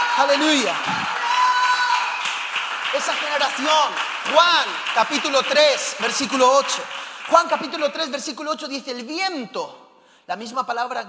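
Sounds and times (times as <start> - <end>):
audience applauding loudly: 0.0 - 8.4
speech: 0.2 - 1.0, 2.9 - 11.0.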